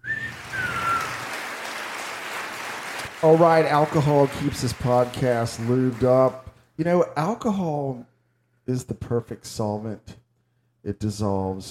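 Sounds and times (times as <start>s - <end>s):
high whistles: 0.0s - 1.8s
crowd applause: 0.0s - 6.4s
speech: 3.2s - 8.1s, 8.7s - 10.2s, 10.8s - 11.7s.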